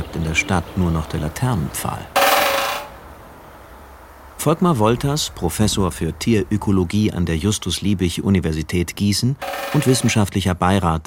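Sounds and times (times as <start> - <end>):
speech: 0.1 - 2.2, 4.4 - 11.0
woodpecker drumming in a forest: 2.2 - 3.0, 9.4 - 10.2.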